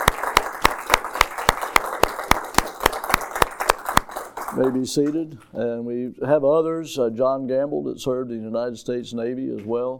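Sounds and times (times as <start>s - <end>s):
crowd applause: 0.0s - 4.9s
rhythmic sharp clap: 0.0s - 5.2s
speech: 4.6s - 9.9s.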